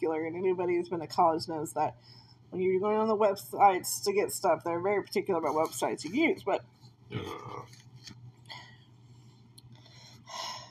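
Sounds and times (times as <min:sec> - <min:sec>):
speech: 0:00.0 - 0:07.8
long low rasping burp: 0:07.1 - 0:07.7.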